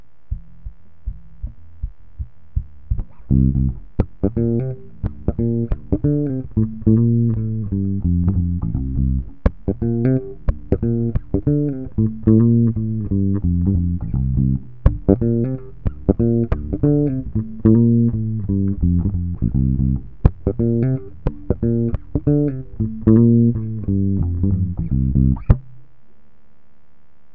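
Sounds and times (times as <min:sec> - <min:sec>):
bass line: 0:00.0 - 0:25.8.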